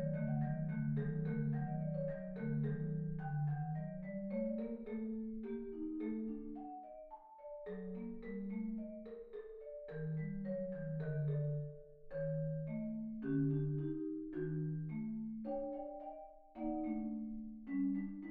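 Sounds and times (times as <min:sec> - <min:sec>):
solo MIDI marimba: 0:00.0 - 0:18.2.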